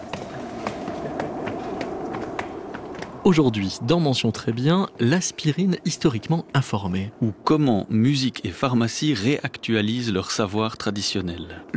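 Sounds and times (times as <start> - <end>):
footsteps climbing a red staircase to a studio: 0.0 - 3.2
steady humming background: 0.0 - 11.7
speech: 3.2 - 11.7.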